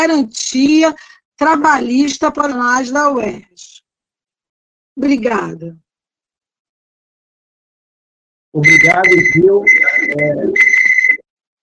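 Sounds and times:
speech: 0:00.0 - 0:03.7, 0:05.0 - 0:05.8, 0:08.5 - 0:10.7
loud whistle beep: 0:08.6 - 0:11.2.

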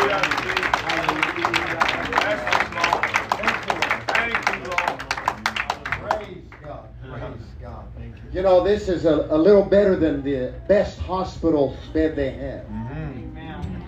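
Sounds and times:
audience hand clapping: 0:00.0 - 0:06.8
speech: 0:08.4 - 0:12.9.

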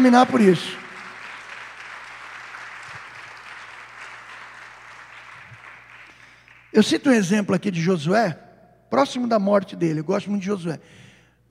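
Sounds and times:
speech: 0:00.0 - 0:00.8, 0:06.8 - 0:11.5
audience applauding: 0:00.0 - 0:06.8.

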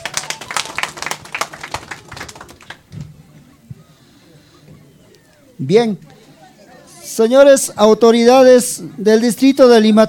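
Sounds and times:
audience clapping: 0:00.0 - 0:03.0
faint low murmuring: 0:00.0 - 0:10.0
speech: 0:05.6 - 0:06.1, 0:07.2 - 0:10.0.

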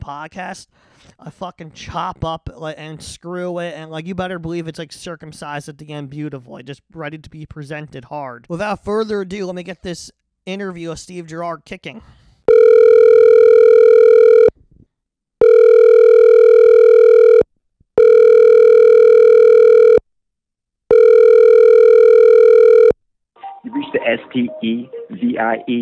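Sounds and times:
speech: 0:00.0 - 0:12.2, 0:23.6 - 0:25.8
telephone ringback tones: 0:12.5 - 0:14.5, 0:15.4 - 0:17.4, 0:18.0 - 0:20.0, 0:20.9 - 0:23.0.

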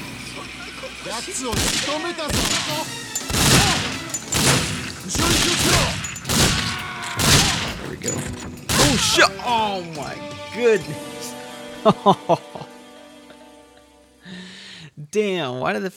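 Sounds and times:
laughter: 0:00.3 - 0:13.9
speech: 0:01.0 - 0:03.0, 0:05.1 - 0:06.0, 0:07.9 - 0:12.7, 0:15.1 - 0:15.9
automatic gunfire in a video game: 0:01.5 - 0:07.9.

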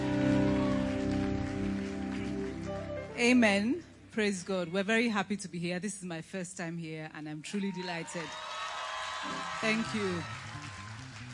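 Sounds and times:
audience clapping hands: 0:00.0 - 0:03.4, 0:08.0 - 0:11.3
speech: 0:03.2 - 0:08.4, 0:09.2 - 0:10.6.

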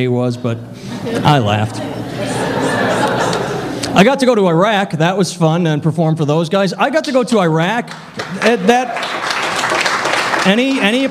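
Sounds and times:
speech: 0:00.0 - 0:02.9, 0:03.9 - 0:09.2, 0:10.4 - 0:11.0
laughter: 0:00.9 - 0:03.9
audience applause: 0:07.9 - 0:11.0.

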